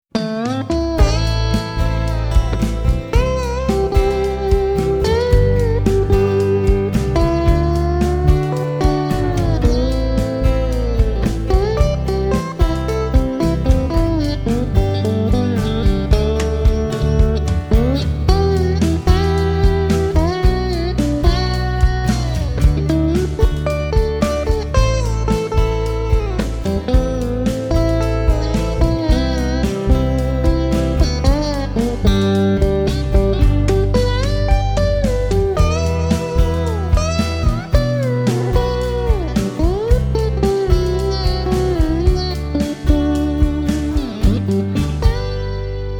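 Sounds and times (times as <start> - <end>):
blues country music: 0.1 - 45.9.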